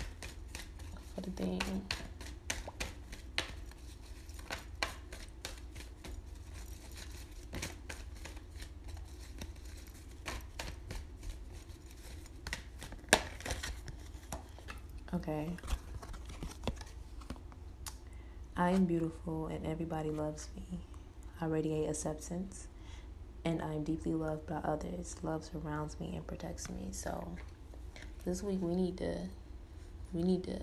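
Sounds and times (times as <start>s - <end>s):
cards being shuffled and one pulled from a deck: 0.0s - 17.6s
speech: 1.2s - 2.1s, 18.6s - 22.7s, 23.4s - 27.5s, 28.2s - 29.4s, 30.1s - 30.6s.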